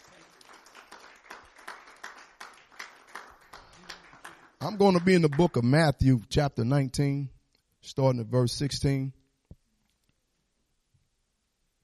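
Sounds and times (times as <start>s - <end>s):
audience clapping: 0.0s - 6.0s
speech: 4.6s - 9.2s.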